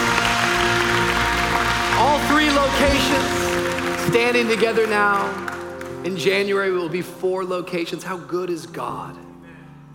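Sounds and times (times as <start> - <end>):
audience applauding: 0.0 - 6.5
speech: 4.1 - 9.2.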